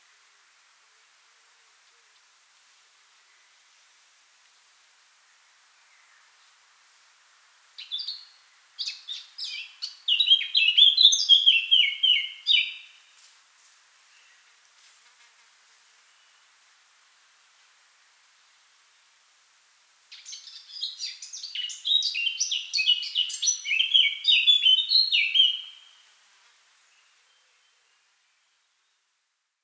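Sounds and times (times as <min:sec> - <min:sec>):
Eurasian blackcap singing: 0:07.8 - 0:12.8, 0:20.1 - 0:25.8.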